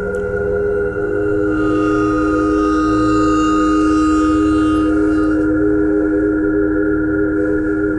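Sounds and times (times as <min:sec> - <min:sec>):
bowed metal vibes playing pentatonic: 0:00.1 - 0:07.8.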